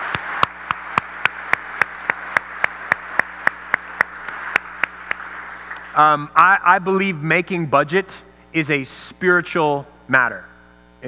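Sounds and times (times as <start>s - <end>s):
audience applause: 0.0s - 6.2s
speech: 6.0s - 11.0s.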